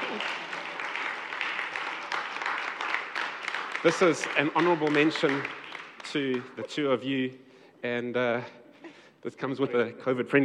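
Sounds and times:
crowd applauding: 0.0s - 6.7s
speech: 3.8s - 8.6s, 9.2s - 10.4s.

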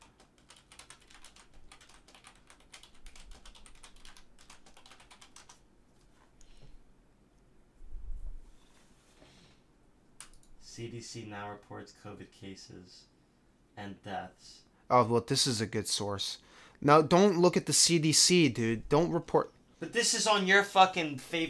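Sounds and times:
computer keyboard typing a web search: 0.0s - 5.6s, 10.2s - 10.5s
speech: 10.8s - 13.1s, 13.8s - 21.4s.

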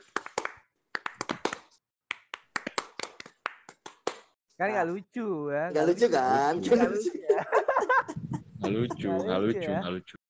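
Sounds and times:
rhythmic scout-style hand clapping pattern: 0.0s - 4.4s
speech: 4.6s - 7.6s, 8.6s - 10.2s
laughter: 6.4s - 10.1s.

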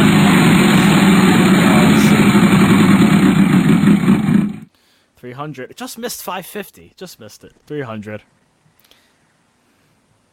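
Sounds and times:
Wheel of Fortune prize wheel spinning: 0.0s - 4.3s
speech: 5.5s - 8.4s.

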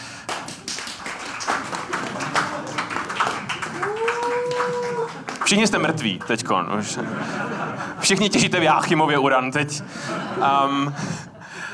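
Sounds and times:
audience clapping softly: 0.0s - 7.2s
laughter: 1.2s - 11.7s
speech: 5.5s - 11.3s.

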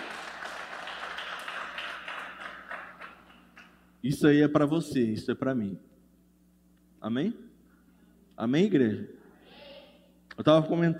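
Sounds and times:
audience applause: 0.0s - 3.4s
speech: 4.0s - 5.9s, 7.0s - 7.5s, 8.4s - 9.2s, 10.4s - 10.9s.

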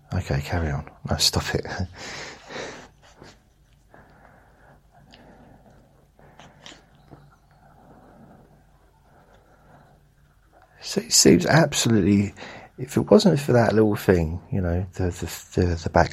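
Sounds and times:
speech: 0.2s - 3.4s, 10.9s - 16.1s
dog sniffing: 2.0s - 10.8s.

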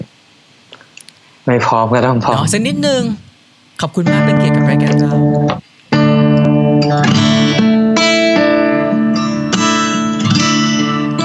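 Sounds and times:
speech: 1.5s - 3.2s, 3.8s - 5.6s, 6.8s - 7.2s
electric guitar with effects: 4.0s - 11.2s.

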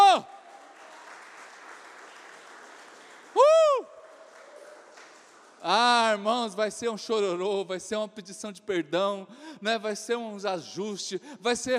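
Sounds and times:
audience applause: 0.0s - 6.1s
speech: 5.6s - 11.7s.

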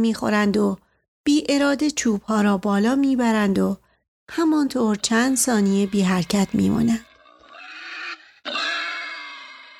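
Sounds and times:
speech: 0.0s - 7.1s
wild boars grunting: 5.7s - 9.7s.

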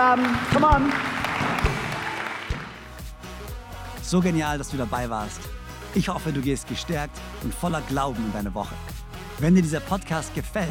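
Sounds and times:
speech: 0.0s - 1.7s, 4.1s - 10.6s
audience applause: 0.0s - 2.9s.

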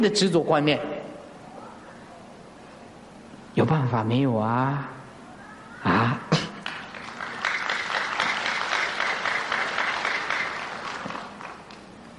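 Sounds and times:
speech: 0.0s - 0.9s, 3.6s - 5.0s
audience applause: 6.6s - 12.0s.

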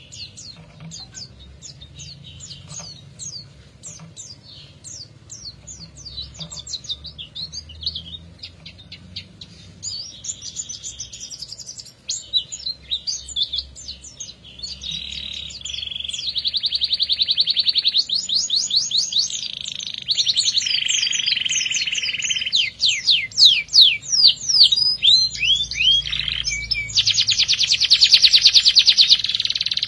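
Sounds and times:
canary singing: 0.0s - 29.8s.

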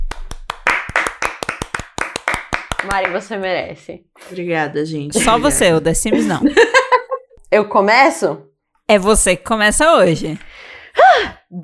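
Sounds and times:
clapping: 0.0s - 3.3s
speech: 2.8s - 6.8s, 7.5s - 11.6s
laughter: 5.2s - 7.4s.

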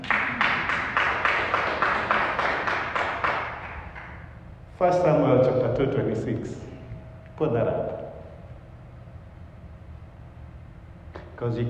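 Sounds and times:
audience clapping in rhythm: 0.0s - 4.4s
speech: 4.8s - 6.7s, 7.4s - 7.9s, 11.4s - 11.6s.

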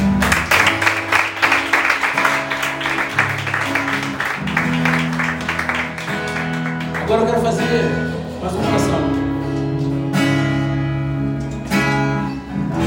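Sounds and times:
audience applause: 0.0s - 7.4s
sustained low keyboard chords: 0.0s - 12.8s
speech: 7.2s - 9.1s.

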